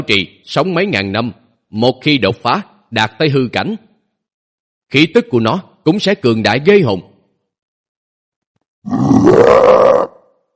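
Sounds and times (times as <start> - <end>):
speech: 0.0 - 3.9, 4.9 - 7.1, 8.8 - 10.2
deep rough beast growl: 8.8 - 10.3.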